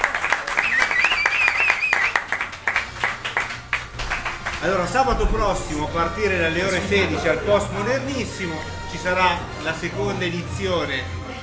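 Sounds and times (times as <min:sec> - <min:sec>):
applause: 0:00.0 - 0:05.0
speech: 0:04.6 - 0:11.4.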